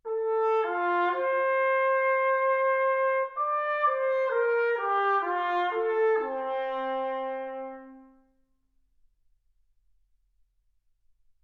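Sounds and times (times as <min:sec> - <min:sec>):
trumpet: 0:00.0 - 0:08.5.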